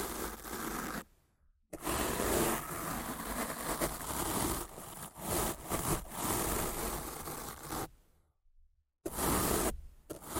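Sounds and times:
rough scratching and brushing against a microphone: 0.0s - 1.1s, 1.8s - 7.9s, 9.1s - 10.3s.

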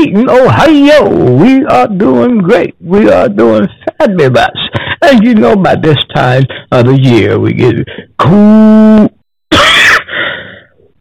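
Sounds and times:
speech: 0.0s - 9.7s
person coughing: 9.5s - 10.2s.

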